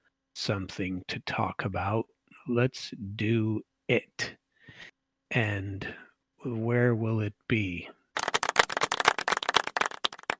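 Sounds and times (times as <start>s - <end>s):
speech: 0.4s - 8.0s
light golf clap after a joke: 8.2s - 10.3s.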